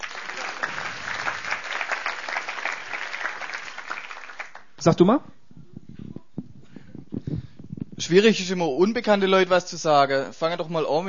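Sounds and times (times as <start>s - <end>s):
group applause: 0.0s - 4.8s
speech: 4.8s - 5.4s, 8.1s - 11.0s.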